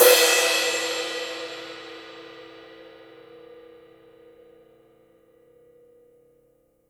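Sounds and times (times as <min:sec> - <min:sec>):
swing drum kit cymbal: 0:00.0 - 0:06.2.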